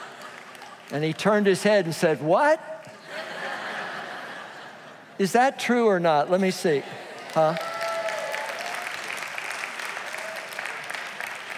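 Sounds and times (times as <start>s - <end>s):
audience clapping: 0.0s - 2.0s, 7.1s - 11.5s
speech: 0.9s - 3.3s, 5.2s - 7.7s
laughter: 2.9s - 5.2s.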